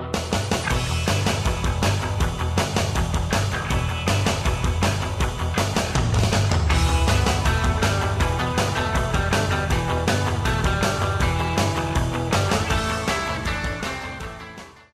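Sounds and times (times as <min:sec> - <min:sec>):
surf: 0:00.1 - 0:14.7.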